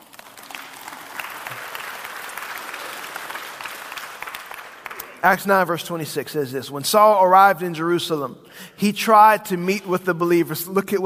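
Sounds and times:
audience applauding: 0.0s - 5.4s
speech: 5.2s - 11.0s.

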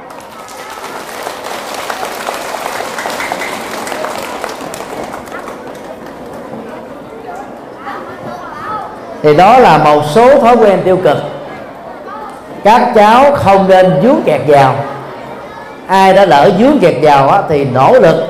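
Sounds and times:
loud round of crowd applause: 0.0s - 7.2s
speech: 9.2s - 11.3s, 12.6s - 14.8s, 15.9s - 18.2s.

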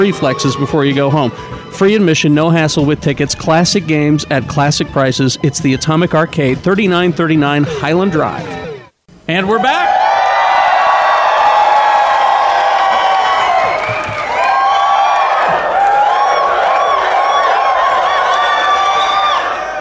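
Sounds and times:
speech: 0.0s - 8.6s, 9.3s - 10.0s
crowd cheering and whooping: 9.4s - 19.7s.

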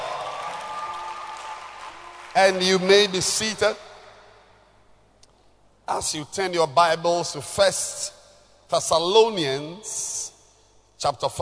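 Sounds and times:
audience clapping hands: 0.0s - 3.2s
speech: 2.4s - 3.9s, 5.9s - 10.3s, 11.0s - 11.3s.

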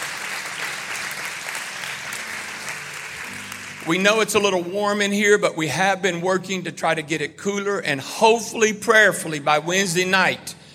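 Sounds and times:
audience applause welcoming guests at an indoor morning gathering: 0.0s - 4.4s
speech: 3.9s - 10.6s.

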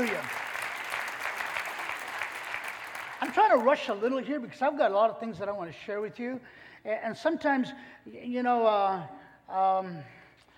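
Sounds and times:
audience clapping: 0.0s - 3.9s
speech: 3.4s - 10.2s.

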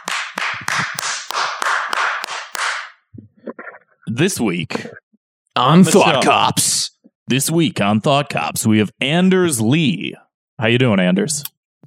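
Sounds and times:
one person clapping into a microphone: 0.0s - 2.9s
speech: 4.2s - 5.0s, 5.6s - 11.6s.

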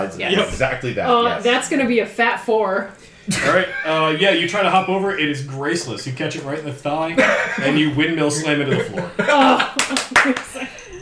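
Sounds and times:
speech: 0.0s - 10.8s
laughter: 3.3s - 5.3s, 7.1s - 10.9s
person clapping hands: 9.8s - 10.6s.

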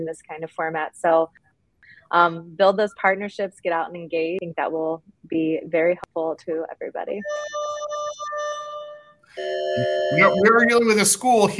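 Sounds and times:
speech: 0.0s - 7.7s, 9.4s - 11.5s
school class-change buzzer electronic tone: 7.2s - 11.2s.

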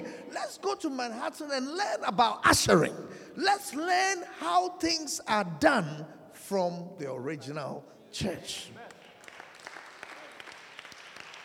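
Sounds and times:
speech: 0.5s - 8.8s
audience clapping: 8.8s - 11.4s.

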